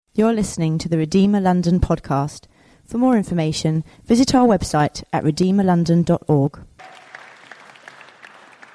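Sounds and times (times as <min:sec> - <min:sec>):
speech: 0:00.2 - 0:07.0
audience applause: 0:06.8 - 0:08.7.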